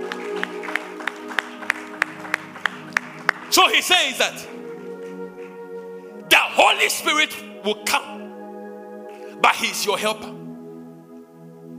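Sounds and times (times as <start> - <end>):
audience clapping hands: 0.0 - 5.6
speech: 3.5 - 4.6, 6.6 - 8.2, 9.4 - 10.4.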